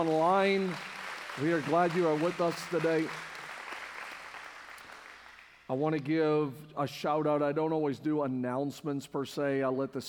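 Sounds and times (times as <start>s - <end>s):
speech: 0.0s - 3.3s, 5.7s - 10.0s
crowd applauding: 0.0s - 5.6s.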